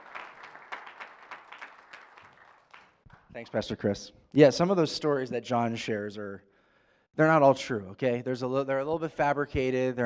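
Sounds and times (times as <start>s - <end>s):
soft scattered applause from an audience: 0.0s - 3.4s
speech: 3.3s - 6.5s, 7.2s - 10.0s.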